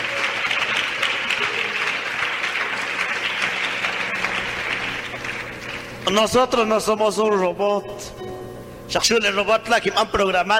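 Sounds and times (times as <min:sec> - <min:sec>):
audience applauding: 0:00.0 - 0:06.2
speech: 0:06.1 - 0:08.2, 0:08.9 - 0:10.5.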